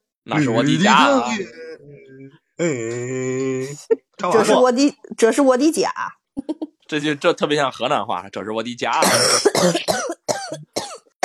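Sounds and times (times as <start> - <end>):
speech: 0.2 - 10.2
person coughing right into a phone microphone: 9.0 - 11.2.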